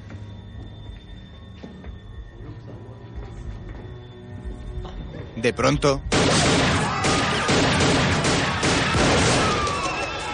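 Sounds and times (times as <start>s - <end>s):
speech: 5.4s - 6.6s
gunfire in a 1999 action thriller: 6.1s - 10.1s.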